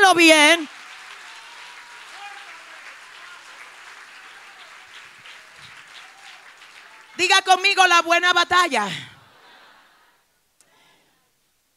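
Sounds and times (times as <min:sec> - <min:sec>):
audience applause: 0:00.0 - 0:07.6
speech: 0:00.1 - 0:00.7, 0:07.5 - 0:09.1.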